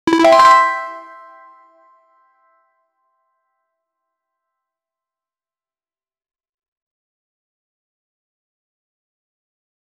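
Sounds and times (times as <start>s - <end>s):
game gold coin collectible sound: 0.1s - 1.5s.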